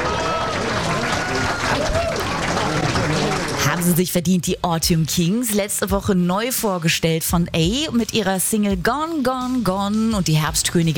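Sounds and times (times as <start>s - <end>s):
applause: 0.0s - 4.1s
speech: 3.8s - 10.9s.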